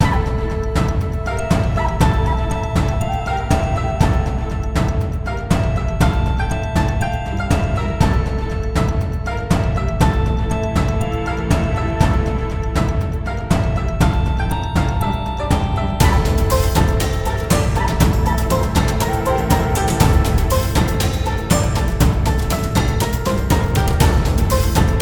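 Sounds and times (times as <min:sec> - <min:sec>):
background music loop: 0:00.0 - 0:25.0.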